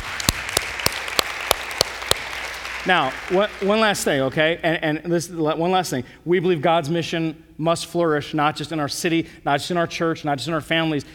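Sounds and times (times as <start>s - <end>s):
audience applause: 0.0s - 4.0s
sharp loud claps: 0.0s - 4.2s
speech: 2.8s - 11.1s.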